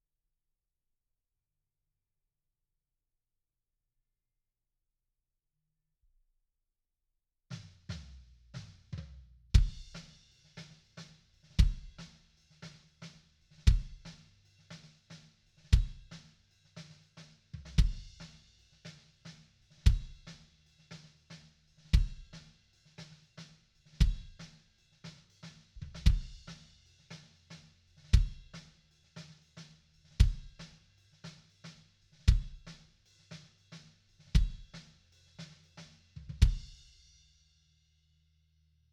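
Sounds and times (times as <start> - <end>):
kick drum: 9.0 - 10.0, 11.6 - 12.0, 13.7 - 14.1, 15.7 - 16.2, 17.6 - 18.3, 19.8 - 20.3, 21.9 - 22.4, 24.0 - 24.4, 25.8 - 26.6, 28.1 - 28.5, 30.2 - 30.7, 32.3 - 32.8, 34.4 - 34.8, 36.2 - 36.8.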